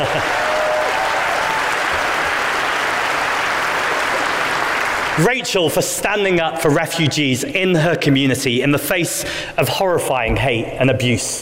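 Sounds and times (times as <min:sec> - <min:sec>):
audience applause: 0:00.0 - 0:05.2
speech: 0:05.2 - 0:11.4.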